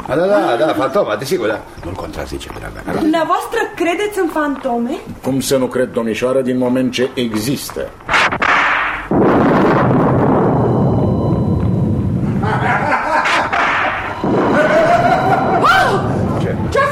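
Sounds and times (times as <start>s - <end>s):
laughter: 0.1s - 1.1s, 12.4s - 16.1s
speech: 0.1s - 8.4s
thunder rumbling: 9.1s - 12.9s, 14.0s - 16.9s.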